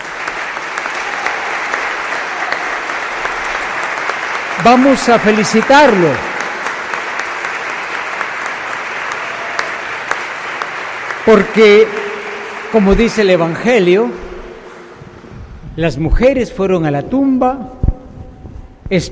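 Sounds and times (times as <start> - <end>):
audience applause: 0.0 - 15.1
speech: 4.6 - 6.3, 11.2 - 12.0, 12.7 - 14.2, 15.8 - 17.8.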